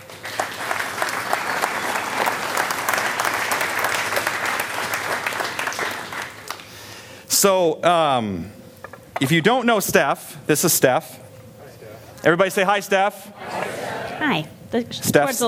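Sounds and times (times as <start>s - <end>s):
audience clapping at Hope Des Moines: 0.0s - 7.1s
speech: 7.4s - 8.6s, 9.2s - 11.2s, 12.2s - 13.4s, 14.2s - 15.4s.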